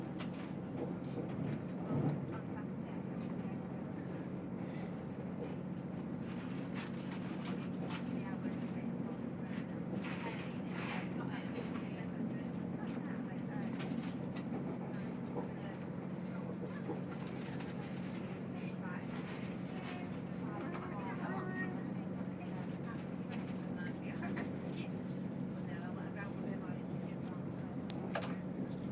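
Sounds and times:
train noise: 0.0s - 28.9s.

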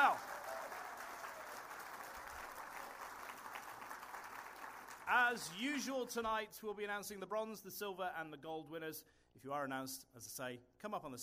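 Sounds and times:
audience applause: 0.0s - 5.6s
speech: 5.1s - 11.2s.

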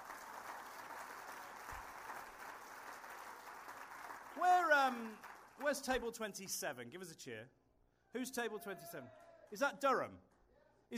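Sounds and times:
audience applause for nominees: 0.0s - 6.0s
speech: 4.4s - 10.3s.

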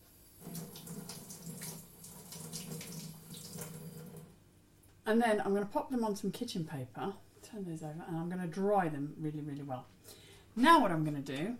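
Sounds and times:
rinsing chops under running tap water: 0.0s - 4.4s
speech: 5.1s - 10.0s, 10.6s - 11.5s.

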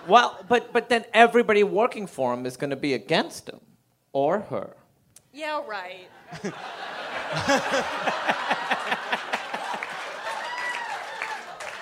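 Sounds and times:
speech: 0.0s - 9.4s
laughter and cheering voices: 6.2s - 11.8s
audience applause: 6.9s - 11.8s.

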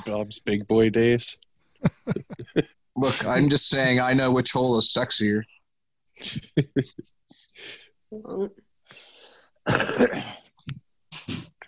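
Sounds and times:
speech: 0.0s - 5.5s, 6.2s - 9.0s, 9.6s - 10.4s
laughter: 1.7s - 3.4s
coughing: 9.6s - 11.6s.

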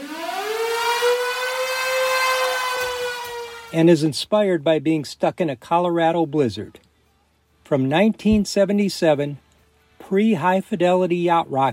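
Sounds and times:
storm siren opening a live 1970s rock song: 0.0s - 3.8s
speech: 3.7s - 6.8s, 7.7s - 9.4s, 10.1s - 11.7s.

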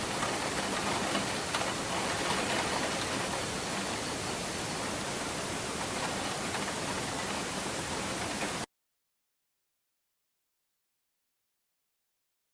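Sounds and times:
rain on an office window: 0.0s - 8.7s.

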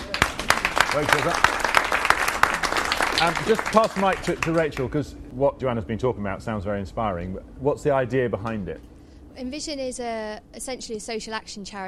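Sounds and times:
round of applause: 0.0s - 4.9s
speech: 0.9s - 1.6s, 3.2s - 11.8s.

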